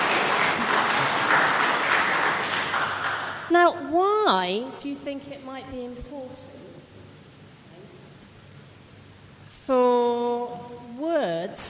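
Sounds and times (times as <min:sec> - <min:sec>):
audience applause: 0:00.0 - 0:03.5
speech: 0:03.5 - 0:07.0, 0:09.7 - 0:11.6.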